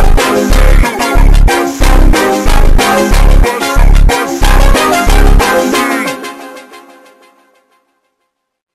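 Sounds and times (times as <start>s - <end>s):
slowed montagem funk music: 0.0s - 6.4s.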